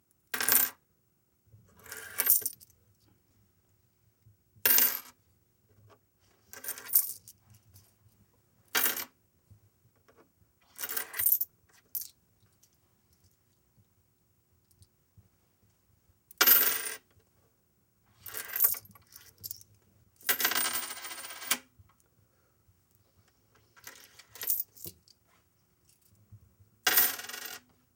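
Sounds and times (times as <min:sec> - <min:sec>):
coins on table: 0:00.4 - 0:00.8, 0:01.8 - 0:02.7, 0:04.6 - 0:05.2, 0:06.5 - 0:07.4, 0:08.7 - 0:09.2, 0:10.6 - 0:12.1, 0:16.3 - 0:17.1, 0:18.2 - 0:19.6, 0:20.2 - 0:21.7, 0:23.8 - 0:25.0, 0:26.8 - 0:27.7.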